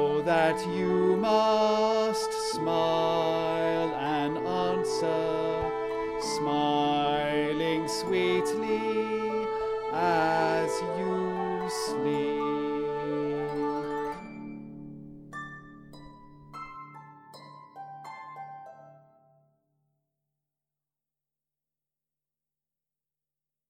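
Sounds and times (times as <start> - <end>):
person singing lullaby: 0.0 - 14.3.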